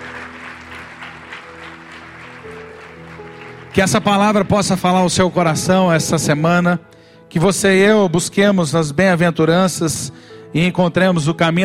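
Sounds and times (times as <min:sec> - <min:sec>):
audience applauding: 0:00.0 - 0:04.6
speech: 0:03.8 - 0:11.6.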